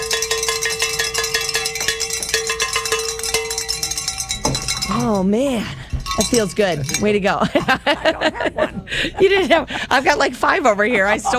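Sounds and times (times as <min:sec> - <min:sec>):
hand bells ringing: 0:00.0 - 0:07.8
speech: 0:05.1 - 0:11.3
laughter: 0:07.2 - 0:11.3.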